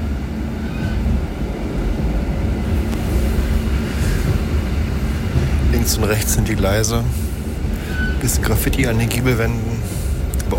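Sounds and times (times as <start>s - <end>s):
older model train rattling and rumbling as it pulls out: 0.0s - 10.5s
speech: 5.8s - 7.2s, 8.2s - 9.7s
faint squeaks: 7.8s - 8.6s.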